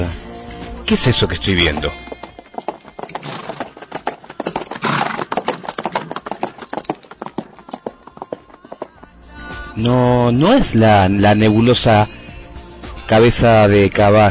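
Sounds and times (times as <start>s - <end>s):
speech: 0.9s - 2.1s, 9.8s - 12.2s, 13.1s - 14.2s
horse hooves clip-clopping: 0.9s - 9.1s.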